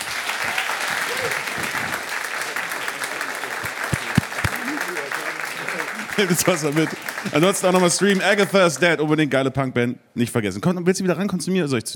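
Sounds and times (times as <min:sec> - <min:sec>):
audience applause: 0:00.0 - 0:08.6
speech: 0:06.2 - 0:11.9.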